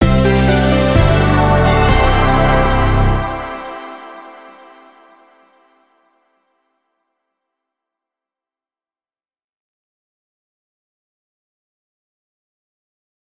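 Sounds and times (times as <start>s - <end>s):
moderate fanfare: 0.0s - 5.4s.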